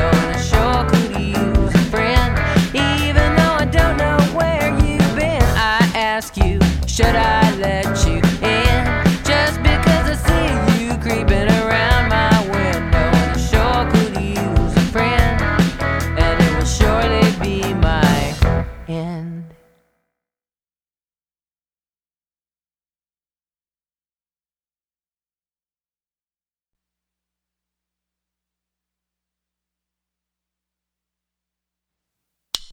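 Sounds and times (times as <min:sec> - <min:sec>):
guitar: 0:00.0 - 0:19.7.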